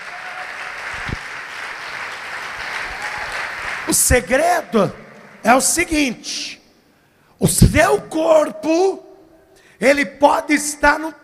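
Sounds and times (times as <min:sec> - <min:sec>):
audience applauding: 0:00.0 - 0:05.7
speech: 0:03.9 - 0:06.6, 0:07.4 - 0:09.0, 0:09.8 - 0:11.2.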